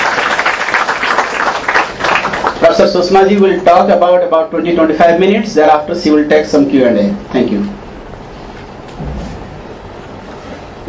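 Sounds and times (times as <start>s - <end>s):
crowd clapping: 0.0s - 2.8s
speech: 2.7s - 7.5s.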